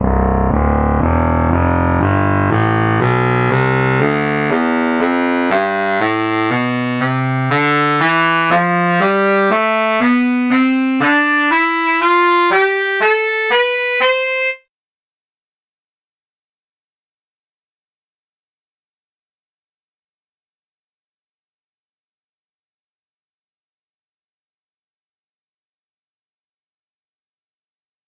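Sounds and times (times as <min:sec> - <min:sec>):
baritone saxophone scale: 0:00.0 - 0:14.6.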